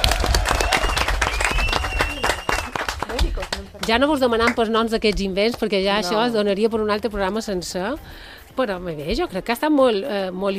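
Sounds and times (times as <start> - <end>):
audience applause: 0.0 - 3.8
speech: 3.6 - 10.5.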